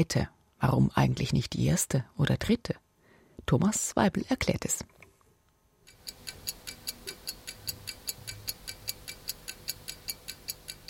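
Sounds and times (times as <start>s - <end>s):
speech: 0.0s - 2.8s, 3.4s - 5.0s
clock ticking: 5.9s - 10.8s.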